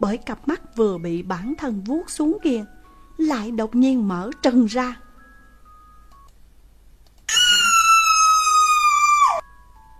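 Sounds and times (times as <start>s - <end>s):
speech: 0.0s - 5.0s
woman screaming in fright: 7.3s - 9.4s.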